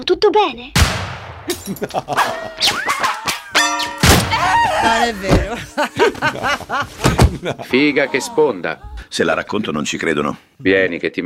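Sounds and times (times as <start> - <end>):
speech: 0.0 - 4.0, 4.8 - 11.2
gunshot: 0.8 - 1.6, 4.0 - 4.3
laughter: 1.5 - 3.6, 4.3 - 9.6
glass bottle smashing: 1.5 - 4.6.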